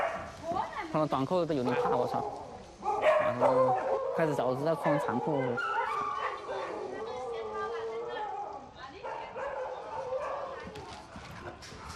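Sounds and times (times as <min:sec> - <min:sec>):
large dog barking: 0:00.0 - 0:00.3, 0:01.8 - 0:10.6
speech: 0:00.9 - 0:02.5, 0:03.3 - 0:05.8.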